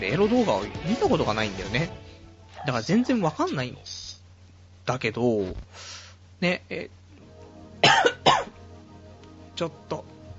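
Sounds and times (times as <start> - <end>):
speech: 0.0 - 4.0, 4.8 - 7.0, 9.6 - 10.1
unwell person coughing with a strained throat: 7.8 - 8.6.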